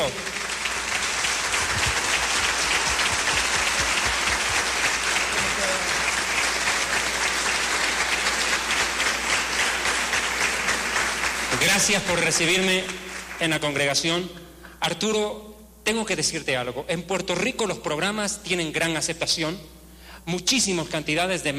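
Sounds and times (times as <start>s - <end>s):
audience applause: 0.0s - 13.6s
speech: 11.8s - 21.5s.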